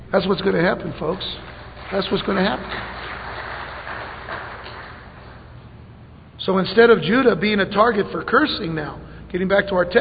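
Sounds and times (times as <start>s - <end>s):
speech: 0.1s - 3.1s, 6.4s - 9.9s
audience clapping: 0.8s - 5.6s.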